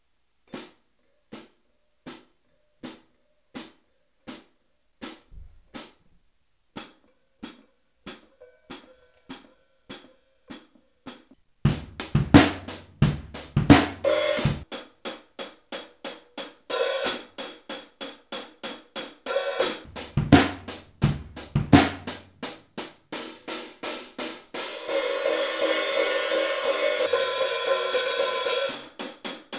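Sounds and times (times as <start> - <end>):
Zildjian hi-hat cymbals: 11.7 - 29.5.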